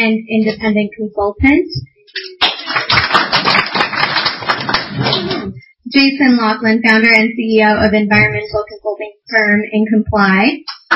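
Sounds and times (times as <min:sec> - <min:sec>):
speech: 0:00.0 - 0:02.4, 0:05.0 - 0:10.9
small round of applause: 0:02.1 - 0:05.5.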